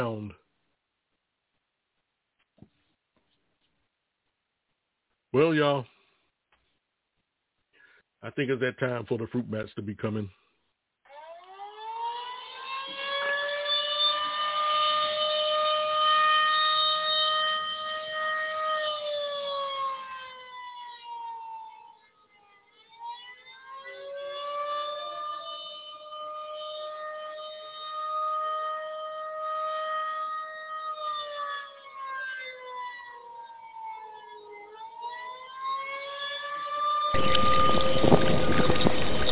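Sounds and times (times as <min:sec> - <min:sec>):
speech: 0:00.0 - 0:00.4, 0:05.4 - 0:05.9, 0:08.2 - 0:10.4
wailing siren-like alarm sound effect: 0:11.0 - 0:39.2.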